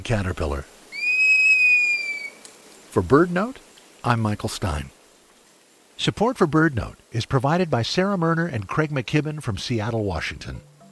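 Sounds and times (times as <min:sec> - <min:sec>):
speech: 0:00.0 - 0:00.8, 0:02.9 - 0:05.0, 0:06.0 - 0:10.7
Cinereous Mourner whistling: 0:00.9 - 0:02.4.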